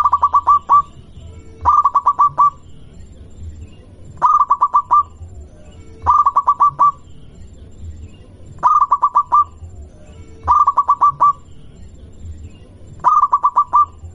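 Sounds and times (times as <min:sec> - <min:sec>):
zebra dove of a local strain cooing: 0:00.0 - 0:01.0, 0:01.6 - 0:02.6, 0:04.2 - 0:05.3, 0:06.0 - 0:07.0, 0:08.6 - 0:11.4, 0:13.0 - 0:14.1.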